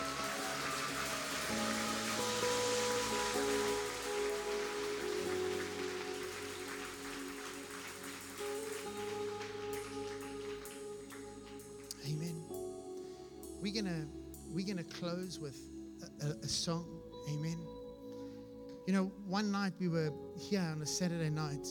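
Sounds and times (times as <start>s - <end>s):
audience clapping: 0.0s - 12.6s
speech: 13.7s - 17.8s, 18.9s - 21.6s.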